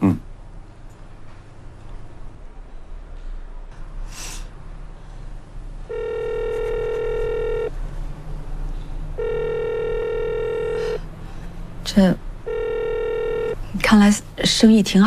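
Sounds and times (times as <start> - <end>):
low noise: 0.0 - 15.0
breathy sniff: 4.0 - 5.4, 10.7 - 11.6
unanswered telephone call ringback tone: 5.9 - 7.7, 9.2 - 11.0, 12.5 - 13.6
speech: 12.0 - 12.2, 13.9 - 15.0.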